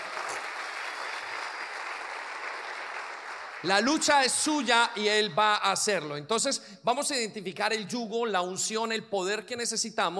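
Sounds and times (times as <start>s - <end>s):
huge applause: 0.0s - 4.5s
speech: 3.6s - 10.1s.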